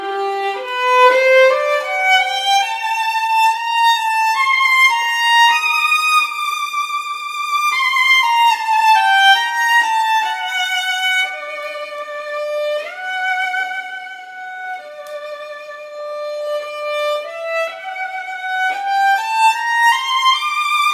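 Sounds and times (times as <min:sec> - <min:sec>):
solo violin: 0:00.0 - 0:20.9.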